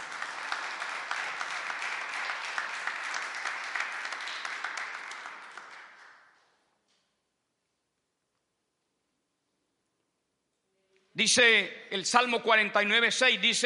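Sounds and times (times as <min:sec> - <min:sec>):
audience clapping hands: 0:00.0 - 0:06.6
speech: 0:11.2 - 0:13.6.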